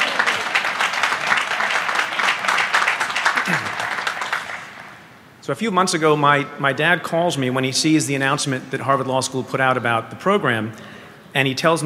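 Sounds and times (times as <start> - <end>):
audience applause: 0.0 - 5.1
speech: 5.5 - 11.8.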